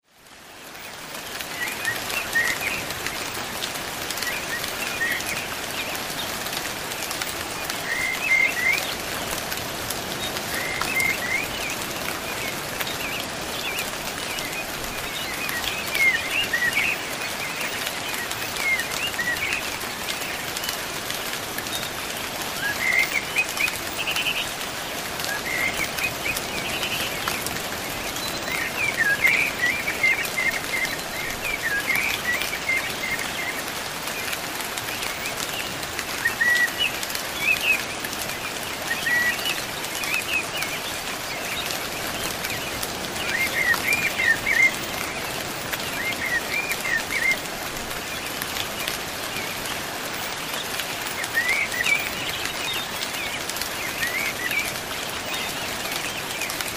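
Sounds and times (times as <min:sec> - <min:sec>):
rain: 0:00.0 - 0:56.7.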